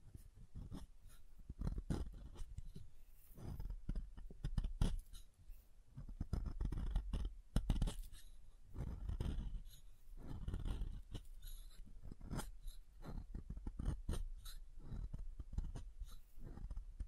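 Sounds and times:
soap being carved: 0.0s - 5.3s, 5.9s - 17.0s.

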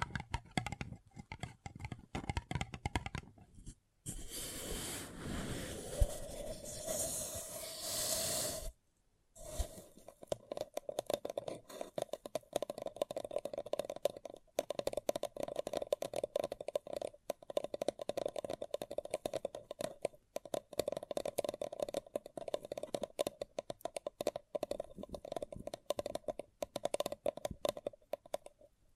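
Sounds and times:
tapping and scratching on a paper cup: 0.0s - 4.2s, 9.4s - 28.7s
rustling scrape: 3.6s - 8.7s.

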